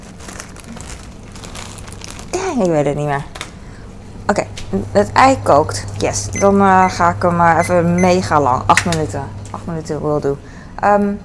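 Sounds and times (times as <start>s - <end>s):
small plastic bag being crinkled and handled: 0.0s - 3.6s
speech: 2.6s - 3.4s, 4.3s - 11.2s.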